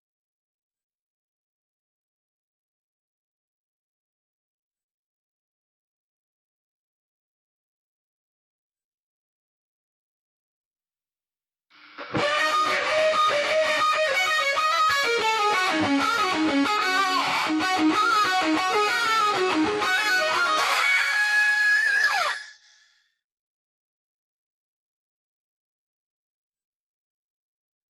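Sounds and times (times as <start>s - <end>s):
guitar: 11.8s - 22.6s.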